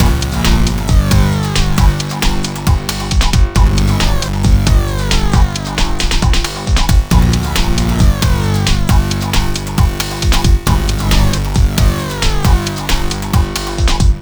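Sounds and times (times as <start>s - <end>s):
hardcore breakbeat in G minor: 0.0s - 14.2s.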